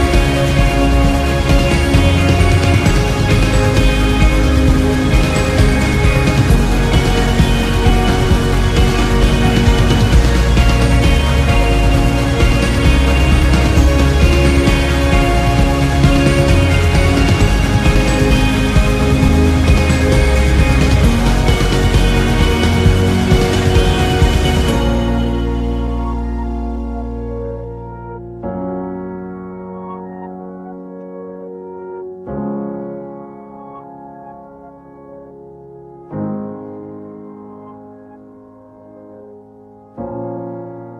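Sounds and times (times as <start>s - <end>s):
karaoke singing: 0.0s - 27.9s.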